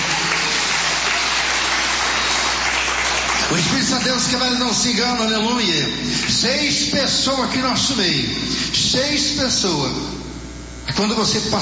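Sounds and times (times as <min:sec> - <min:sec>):
audience applause: 0:00.0 - 0:04.2
speech: 0:03.5 - 0:10.2, 0:10.9 - 0:11.6.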